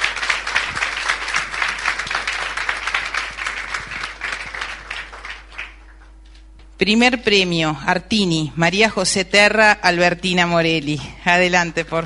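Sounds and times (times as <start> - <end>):
crowd applause: 0.0 - 6.0
speech: 6.8 - 12.0.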